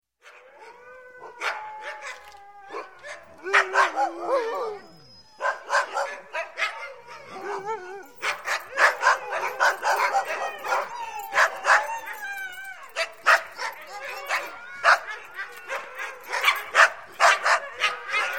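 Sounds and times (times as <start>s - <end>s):
Husky dog barking: 3.1s - 4.1s, 5.4s - 6.9s, 8.2s - 11.9s, 12.9s - 18.3s.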